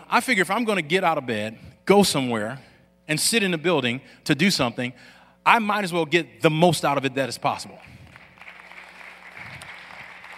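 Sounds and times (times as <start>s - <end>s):
speech: 0.1s - 8.0s
audience clapping: 8.0s - 10.3s.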